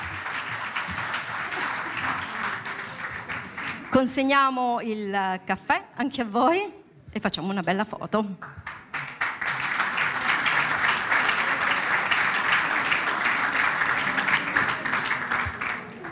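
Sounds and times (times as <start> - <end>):
audience applause: 0.0 - 3.9, 8.7 - 16.1
speech: 4.0 - 8.7.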